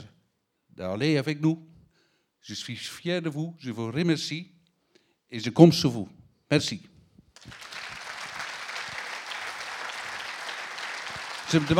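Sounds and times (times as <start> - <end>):
speech: 0.8 - 1.7, 2.4 - 4.6, 5.3 - 7.7, 11.5 - 11.7
audience applause: 7.4 - 11.7.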